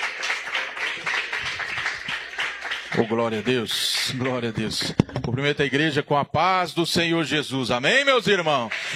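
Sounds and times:
church congregation clapping for a visiting preacher: 0.0s - 5.2s, 8.2s - 8.9s
speech: 3.0s - 8.9s.

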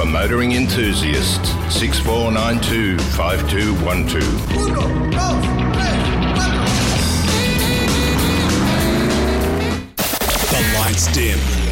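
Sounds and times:
speech: 0.1s - 6.0s, 11.0s - 11.6s
DeLorean car engine revving: 5.0s - 11.7s.

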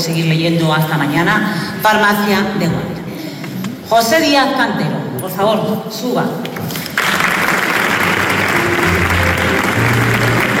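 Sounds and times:
speech: 0.0s - 3.0s, 3.9s - 6.5s
audience applause: 6.8s - 10.5s.

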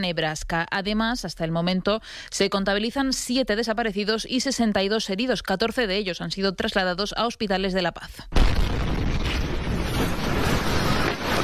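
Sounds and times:
speech: 0.0s - 8.8s
explosion at a military barracks: 8.4s - 11.4s.

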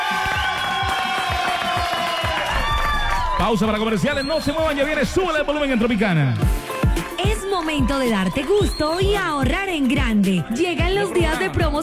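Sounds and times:
audience applause: 0.0s - 9.7s
speech: 3.4s - 6.7s, 7.6s - 11.8s.

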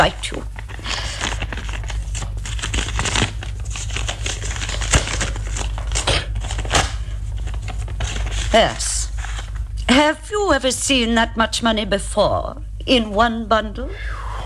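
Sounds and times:
speech: 0.0s - 0.5s, 8.5s - 8.9s, 9.9s - 14.2s
thick bulky paper envelope torn open: 0.0s - 9.6s.

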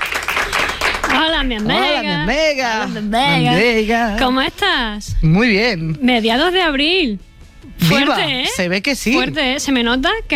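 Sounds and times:
applause: 0.0s - 1.8s
speech: 1.3s - 10.3s.

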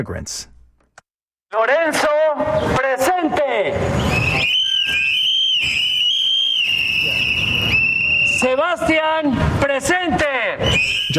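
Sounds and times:
speech: 0.0s - 0.5s, 1.5s - 4.4s, 8.4s - 11.1s
protest crowd blowing whistles: 3.9s - 8.8s, 10.6s - 11.1s.

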